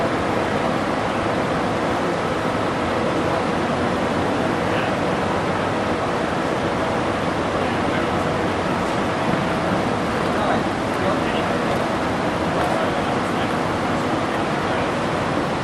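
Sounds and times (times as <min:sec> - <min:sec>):
city hum: 0:00.0 - 0:15.6
fountain: 0:00.0 - 0:15.6
few people walking by in a public place: 0:07.5 - 0:15.6.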